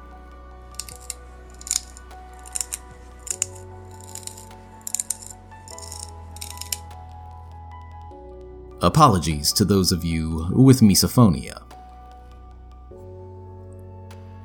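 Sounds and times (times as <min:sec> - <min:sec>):
bending tin crackling: 0:00.8 - 0:06.8
speech: 0:08.8 - 0:11.6.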